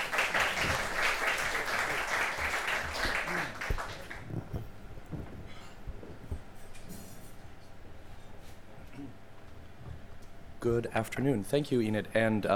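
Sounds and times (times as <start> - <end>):
audience applause welcoming two speakers at a talk: 0.0 - 4.6
speech: 10.7 - 12.5.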